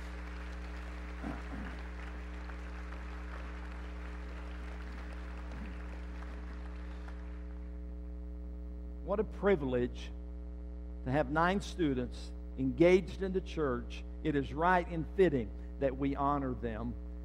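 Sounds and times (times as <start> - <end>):
audience clapping: 0.0 - 7.8
constant low hum: 0.0 - 17.2
speech: 9.1 - 10.2, 11.1 - 17.0.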